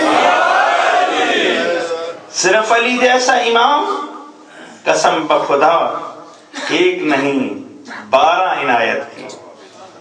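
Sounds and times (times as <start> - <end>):
crowd answering a chant at a religious gathering: 0.0 - 2.2
speech: 2.4 - 4.0, 4.8 - 9.4.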